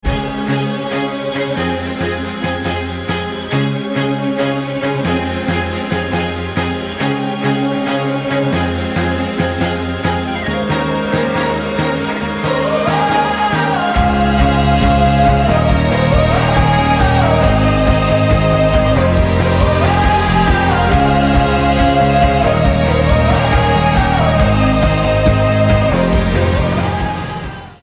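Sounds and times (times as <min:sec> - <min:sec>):
loud instrumental ringtone: 0:00.1 - 0:27.7.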